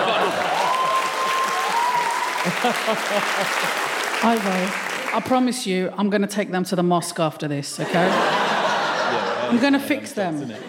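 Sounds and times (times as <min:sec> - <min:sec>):
laughter: 0:00.0 - 0:01.0, 0:01.7 - 0:04.0, 0:07.8 - 0:10.6
audience applause: 0:00.0 - 0:05.3
speech: 0:02.5 - 0:08.5, 0:09.5 - 0:10.6.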